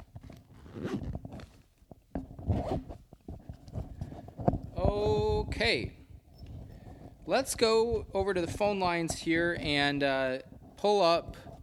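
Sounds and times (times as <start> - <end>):
zipper being zipped up: 0.0 - 1.6, 2.4 - 3.0
speech: 5.0 - 6.0, 7.3 - 11.5.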